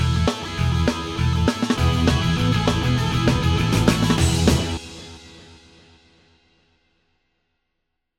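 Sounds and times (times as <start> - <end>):
instrumental pop punk music: 0.0 - 6.3.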